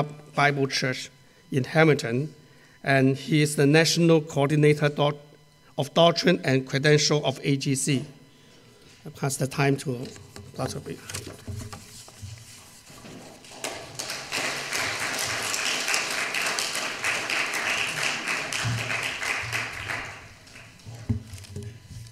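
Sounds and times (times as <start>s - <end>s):
speech: 0.0s - 5.2s, 5.8s - 8.2s, 9.0s - 11.6s
audience clapping: 13.4s - 20.9s.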